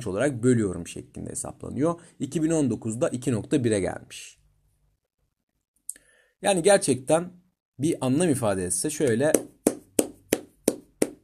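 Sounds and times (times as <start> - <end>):
speech: 0.0 - 4.4, 6.4 - 9.4
hand clapping: 9.0 - 11.2.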